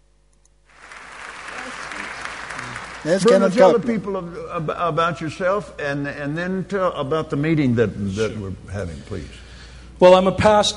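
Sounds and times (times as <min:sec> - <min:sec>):
crowd applause: 0:00.7 - 0:04.0
speech: 0:03.0 - 0:09.4, 0:10.0 - 0:10.7.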